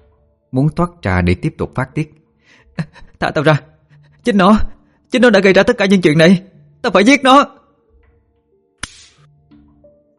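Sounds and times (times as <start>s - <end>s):
speech: 0.5s - 2.2s, 2.8s - 7.6s
slap across the face: 8.8s - 9.3s.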